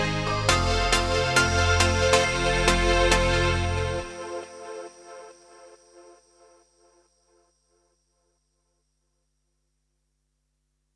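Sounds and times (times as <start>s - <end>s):
melody: 0.0s - 5.1s.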